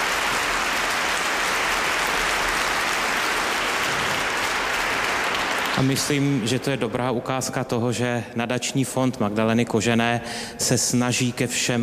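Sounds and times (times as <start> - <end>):
audience applause: 0.0 - 6.8
speech: 5.8 - 11.8.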